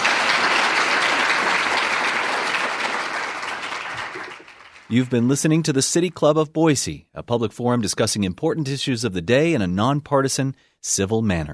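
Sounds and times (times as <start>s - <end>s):
audience applause: 0.0s - 5.3s
speech: 4.9s - 11.5s.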